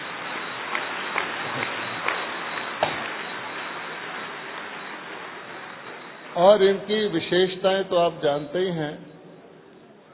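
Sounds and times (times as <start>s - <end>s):
audience applause: 0.0s - 7.3s
speech: 6.4s - 9.1s.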